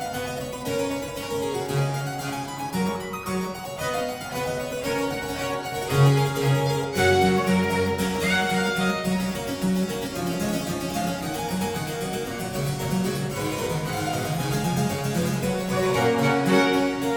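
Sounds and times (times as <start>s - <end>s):
violin playing a concerto allegro in C: 0.0s - 17.1s
flute playing a concerto allegro in C: 3.8s - 9.4s.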